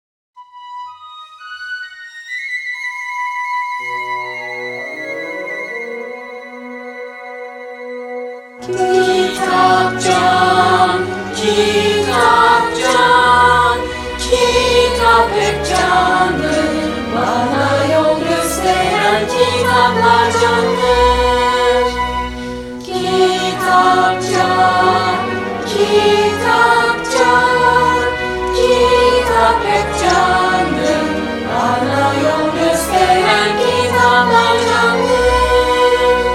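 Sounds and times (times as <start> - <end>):
children singing a song: 8.6 - 36.3.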